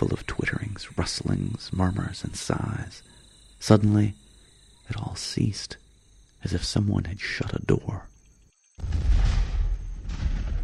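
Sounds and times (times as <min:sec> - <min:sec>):
speech: 0:00.0 - 0:04.2, 0:04.9 - 0:05.8, 0:06.4 - 0:08.1
thunder: 0:08.8 - 0:10.6.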